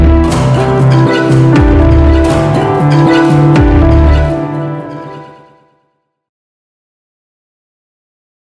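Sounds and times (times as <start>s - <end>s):
sci-fi main menu tune: 0.0s - 5.6s.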